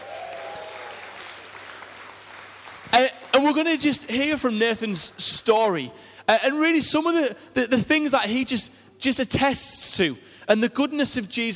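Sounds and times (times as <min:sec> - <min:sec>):
audience cheering: 0:00.0 - 0:02.8
audience applauding: 0:00.0 - 0:03.5
speech: 0:02.9 - 0:11.5.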